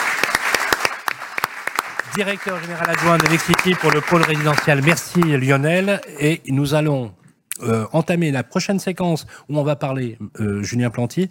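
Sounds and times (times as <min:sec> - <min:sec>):
applause: 0:00.0 - 0:06.1
speech: 0:02.1 - 0:11.2.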